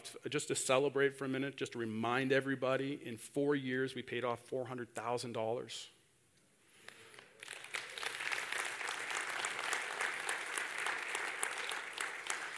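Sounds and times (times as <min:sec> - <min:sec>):
speech: 0:00.2 - 0:06.0
sustained audience applause: 0:07.1 - 0:12.5.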